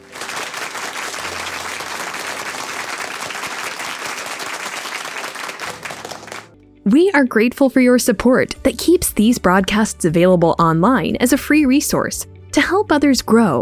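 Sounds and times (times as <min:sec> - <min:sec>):
audience applause: 0:00.0 - 0:06.5
speech: 0:06.9 - 0:13.6.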